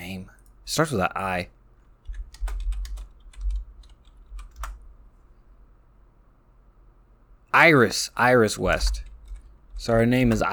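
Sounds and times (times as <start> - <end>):
speech: 0.2 - 1.6, 7.6 - 9.1, 9.8 - 10.5
typing on a computer keyboard: 2.0 - 4.9, 8.7 - 10.5.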